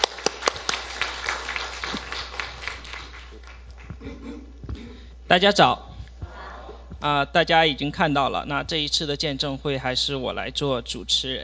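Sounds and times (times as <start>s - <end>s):
room full of people applauding: 0.0s - 4.0s
speech: 5.3s - 5.9s, 7.0s - 11.4s.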